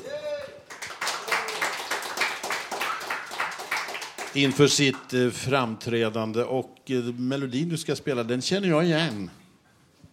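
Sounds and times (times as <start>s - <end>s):
group clapping: 0.6s - 5.2s
speech: 4.4s - 9.4s.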